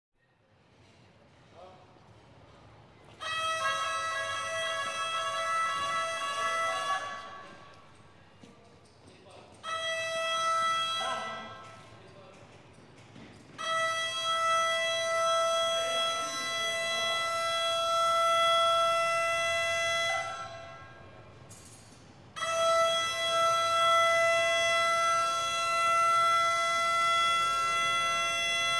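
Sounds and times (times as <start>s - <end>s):
fire brigade alarm: 3.2s - 8.0s, 9.6s - 12.5s, 13.2s - 21.4s, 22.3s - 28.7s.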